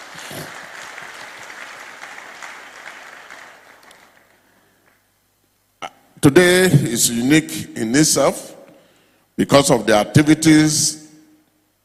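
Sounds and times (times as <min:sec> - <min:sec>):
audience clapping: 0:00.0 - 0:05.1
speech: 0:06.2 - 0:08.5, 0:09.4 - 0:11.0.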